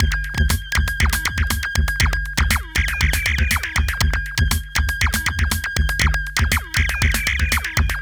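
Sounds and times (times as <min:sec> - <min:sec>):
structured IDM rhythm: 0:00.0 - 0:08.0.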